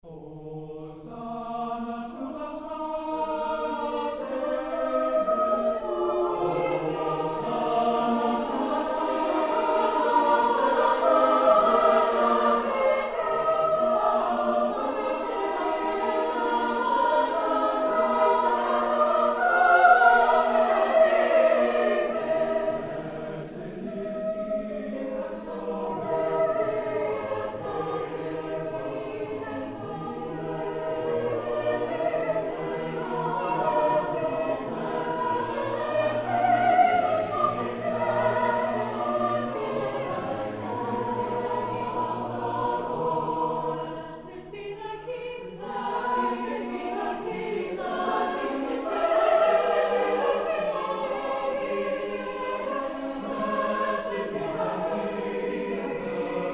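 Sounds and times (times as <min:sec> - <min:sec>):
choir singing chorale: 0:00.0 - 0:56.5.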